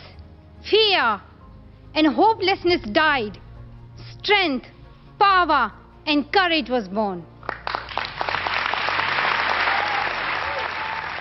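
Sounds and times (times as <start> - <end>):
speech: 1.0 - 1.3, 2.0 - 3.4, 4.2 - 7.3
audience applause filling a room: 7.4 - 11.1.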